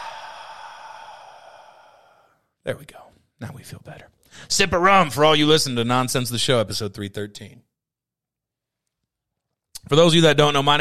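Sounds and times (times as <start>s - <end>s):
breathing out after deep breath: 0.0s - 2.4s
speech: 2.6s - 7.7s, 9.9s - 10.8s.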